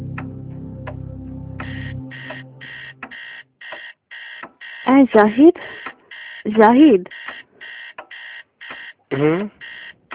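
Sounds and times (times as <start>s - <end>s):
electronic clock alarm beeping at two o'clock at night: 1.6s - 4.9s, 5.6s - 9.0s, 9.6s - 10.0s
speech: 5.0s - 5.8s, 6.4s - 7.2s, 9.1s - 9.6s
short vocal sound: 9.1s - 9.6s.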